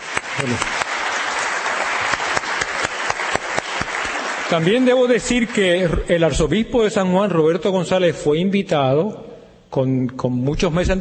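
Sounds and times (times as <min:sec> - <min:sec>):
audience applause: 0:00.0 - 0:05.6
speech: 0:00.4 - 0:00.8, 0:04.5 - 0:10.9.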